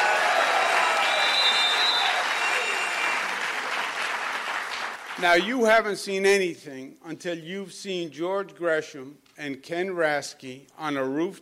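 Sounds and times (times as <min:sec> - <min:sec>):
audience applause: 0:00.0 - 0:05.4
speech: 0:05.2 - 0:11.4.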